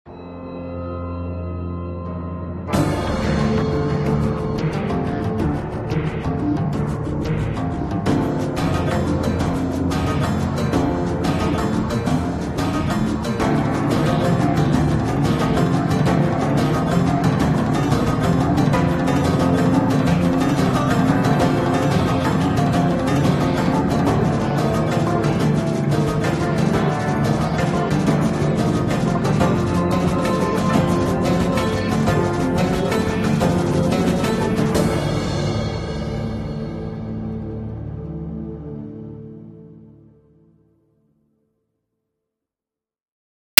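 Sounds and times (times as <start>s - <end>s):
tense music loop: 0.6s - 39.7s.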